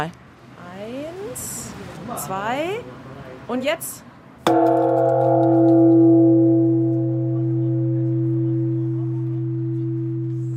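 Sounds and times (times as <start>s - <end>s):
speech: 0.0s - 0.2s, 2.1s - 5.2s
large Shinto shrine bell ringing: 4.5s - 10.5s.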